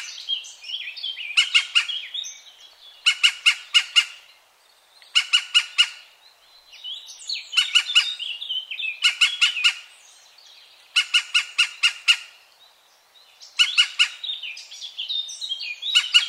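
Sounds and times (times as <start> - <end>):
European green woodpecker calling: 1.2 - 2.2, 3.0 - 4.3, 5.0 - 6.1, 7.5 - 9.9, 10.9 - 12.4, 13.5 - 14.5, 15.9 - 16.2.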